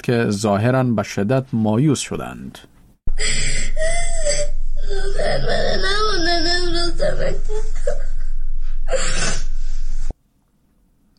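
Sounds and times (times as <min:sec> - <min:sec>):
speech: 0:00.0 - 0:03.8, 0:05.2 - 0:08.0
schoolgirl sobbing and wailing: 0:03.1 - 0:09.6.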